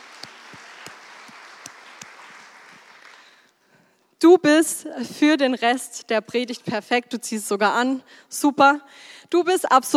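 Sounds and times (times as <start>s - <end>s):
audience applause: 0.0s - 3.4s
speech: 4.2s - 9.9s.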